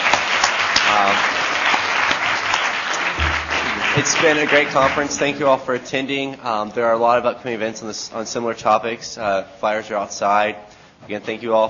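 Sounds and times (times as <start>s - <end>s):
audience applause: 0.0s - 5.5s
speech: 4.0s - 11.6s.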